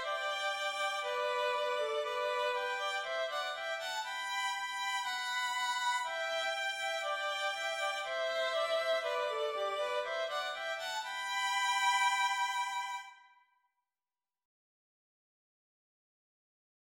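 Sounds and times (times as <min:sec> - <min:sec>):
melody in G with violin thirds: 0:00.0 - 0:13.1.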